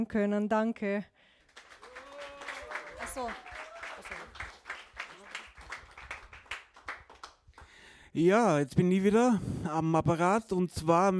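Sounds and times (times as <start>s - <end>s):
speech: 0.0s - 1.3s, 3.2s - 3.5s, 8.2s - 11.1s
applause: 1.4s - 7.9s.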